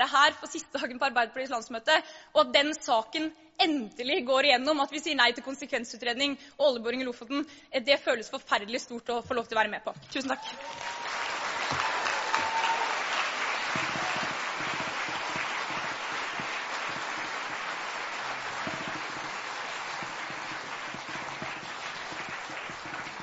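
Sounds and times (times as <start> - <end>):
speech: 0.0 - 11.2
audience applause: 10.4 - 23.2.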